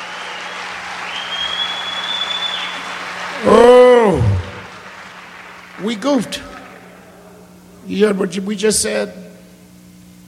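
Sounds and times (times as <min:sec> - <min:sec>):
audience applause: 0:00.0 - 0:07.0
speech: 0:05.8 - 0:06.5, 0:07.9 - 0:09.3.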